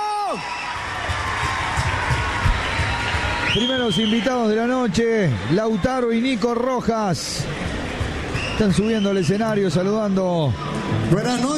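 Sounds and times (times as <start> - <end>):
audience cheering: 0.0 - 10.2
audience applause: 0.1 - 8.8
speech: 0.3 - 0.6, 3.6 - 7.6, 8.6 - 11.5.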